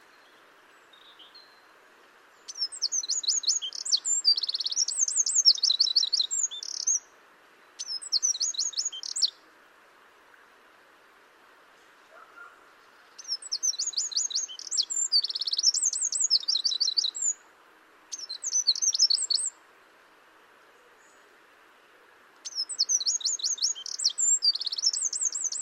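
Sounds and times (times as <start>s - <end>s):
Eurasian wren trilling song: 2.5s - 7.0s, 7.8s - 9.4s, 13.1s - 17.4s, 18.1s - 19.6s, 22.4s - 25.6s.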